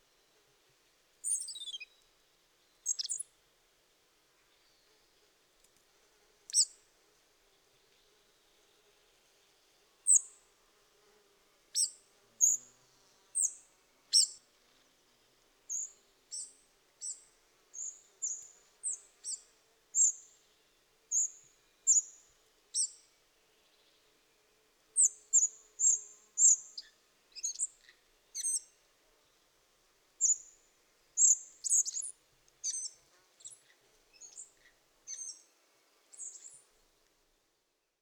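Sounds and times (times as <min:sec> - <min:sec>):
faint hiss: 0:00.0 - 0:38.0
spotted flycatcher squeaky calls: 0:01.2 - 0:01.9, 0:02.9 - 0:03.2, 0:13.4 - 0:14.4, 0:25.0 - 0:27.7, 0:28.4 - 0:28.7, 0:30.2 - 0:30.4, 0:31.2 - 0:33.6, 0:35.1 - 0:35.5, 0:36.2 - 0:36.6.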